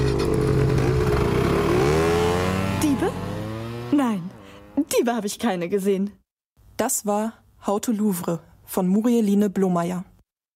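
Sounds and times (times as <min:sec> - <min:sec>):
scooter engines revving: 0:00.0 - 0:04.9
speech: 0:05.0 - 0:06.2, 0:06.8 - 0:10.1.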